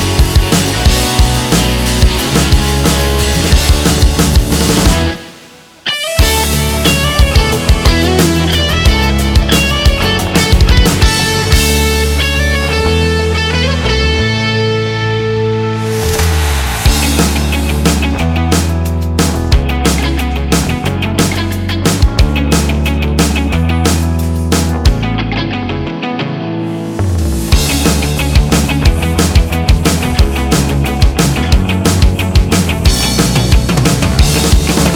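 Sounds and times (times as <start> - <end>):
instrumental music: 0.0 - 34.9.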